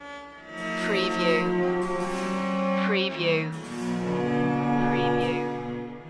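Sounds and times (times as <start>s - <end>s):
baroque music loop: 0.0s - 6.0s.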